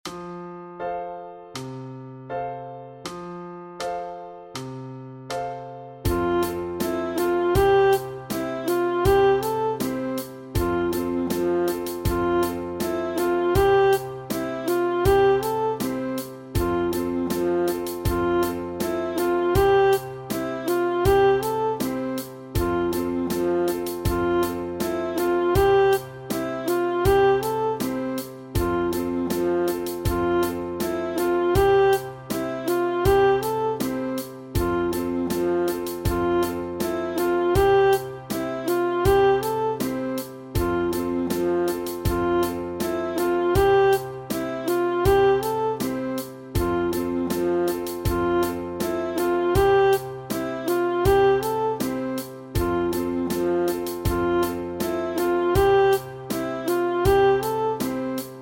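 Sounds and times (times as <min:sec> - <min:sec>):
saxophone study: 0:06.0 - 0:58.3.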